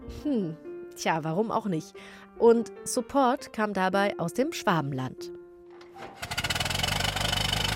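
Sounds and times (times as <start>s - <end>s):
speech: 0.2s - 5.4s
early automobile engine running: 6.2s - 7.7s.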